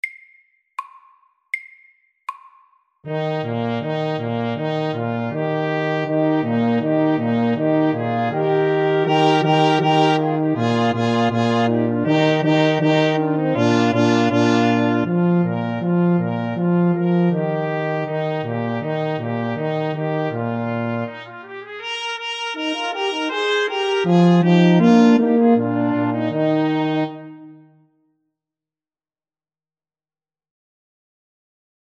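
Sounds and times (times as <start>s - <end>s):
fanfare: 3.1s - 27.7s.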